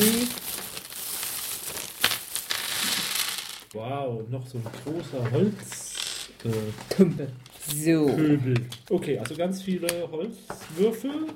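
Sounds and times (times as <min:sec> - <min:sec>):
plastic bag crinkling: 0:00.0 - 0:03.7
speech: 0:03.7 - 0:05.8, 0:06.4 - 0:11.3.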